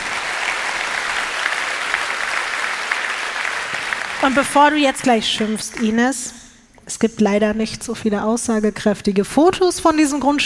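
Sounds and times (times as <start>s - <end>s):
audience clapping: 0.0s - 6.0s
speech: 4.2s - 10.4s.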